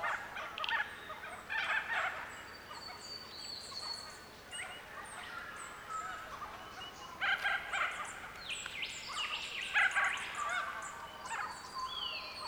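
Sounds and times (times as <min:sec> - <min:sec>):
birdsong chorus: 0:00.0 - 0:12.4.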